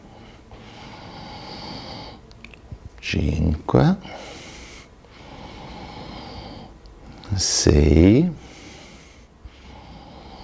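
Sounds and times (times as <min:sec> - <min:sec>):
soft breath during a guided breathing exercise: 0:00.0 - 0:02.2, 0:04.0 - 0:07.4, 0:08.4 - 0:10.4
speech: 0:03.0 - 0:04.3, 0:07.4 - 0:08.4.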